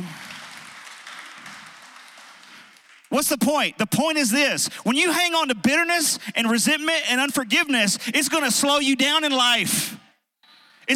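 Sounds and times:
audience hand clapping: 0.0 - 3.3
speech: 3.1 - 10.0.

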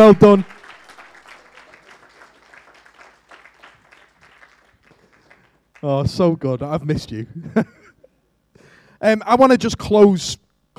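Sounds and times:
speech: 0.0 - 0.5, 5.8 - 7.8, 9.0 - 10.4
audience applause: 0.0 - 5.9.

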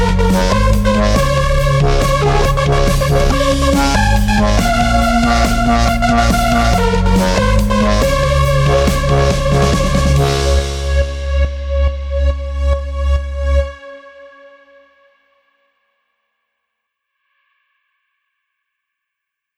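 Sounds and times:
pop EDM music: 0.0 - 12.7.

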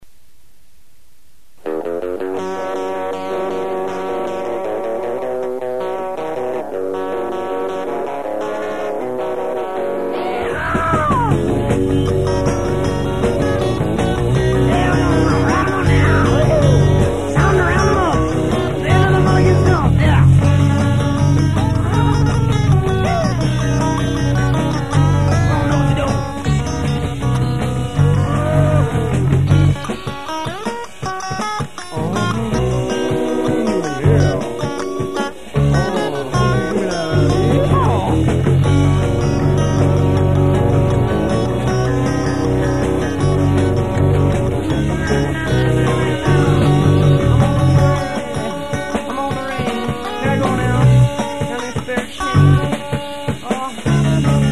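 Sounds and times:
cowboy song: 1.7 - 54.5.

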